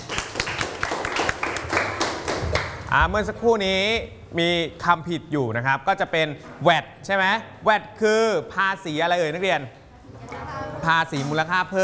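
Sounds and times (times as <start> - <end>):
classroom clapping for a student: 0.0 - 3.0
speech: 2.9 - 9.8, 10.8 - 11.8.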